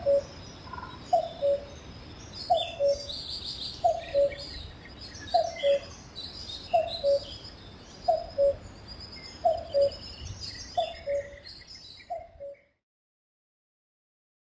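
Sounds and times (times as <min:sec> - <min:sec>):
cuckoo calling: 0:00.0 - 0:01.8, 0:02.4 - 0:04.6, 0:05.2 - 0:05.9, 0:06.7 - 0:12.7.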